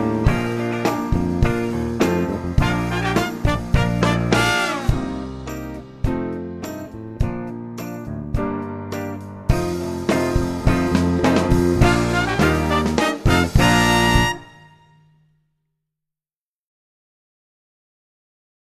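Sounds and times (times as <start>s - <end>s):
percussion playing a Christmas song: 0.0s - 8.1s, 9.0s - 14.9s.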